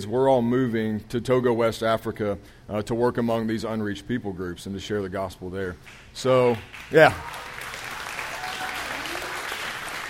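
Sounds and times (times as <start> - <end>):
speech: 0.0 - 7.5
audience clapping: 5.8 - 10.0.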